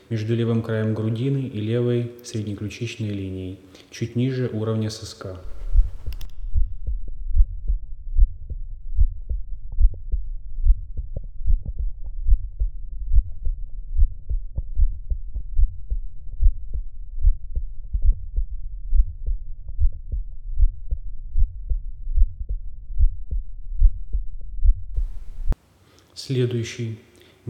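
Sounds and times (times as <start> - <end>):
speech: 0.1 - 5.6, 26.3 - 27.1
Still's murmur heard through stethoscope: 5.4 - 25.6.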